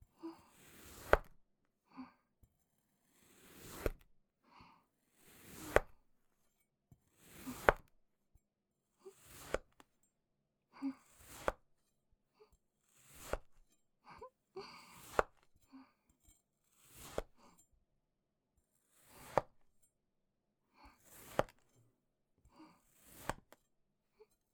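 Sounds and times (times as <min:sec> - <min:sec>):
cutting sand clay: 0:00.6 - 0:01.3, 0:03.2 - 0:04.0, 0:05.3 - 0:06.0, 0:07.2 - 0:07.9, 0:09.1 - 0:09.8, 0:11.1 - 0:11.6, 0:12.9 - 0:13.6, 0:14.9 - 0:15.4, 0:16.8 - 0:17.5, 0:18.9 - 0:19.6, 0:21.0 - 0:21.6, 0:22.9 - 0:23.6.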